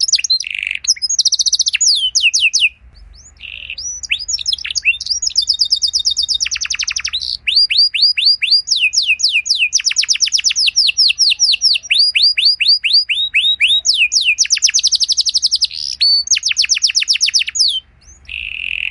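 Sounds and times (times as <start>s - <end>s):
Belgian canary singing trilled phrases: 0.0s - 18.8s.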